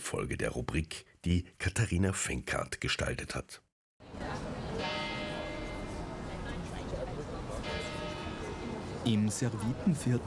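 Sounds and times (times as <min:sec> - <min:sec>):
speech: 0:00.1 - 0:04.3, 0:09.0 - 0:10.2
church bells ringing in the Servitenviertel, Vienna: 0:04.7 - 0:06.7, 0:07.4 - 0:10.2.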